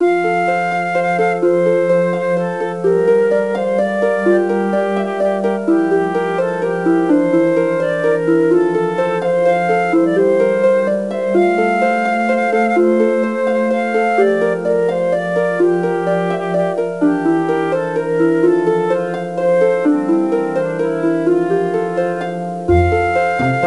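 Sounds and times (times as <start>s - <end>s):
flute: 0.0s - 23.6s.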